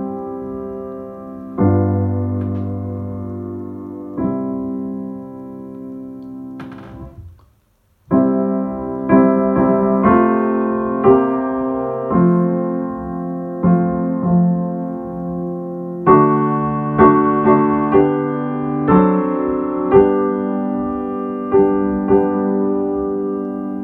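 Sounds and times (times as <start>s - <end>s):
solo piano: 0.0s - 23.8s.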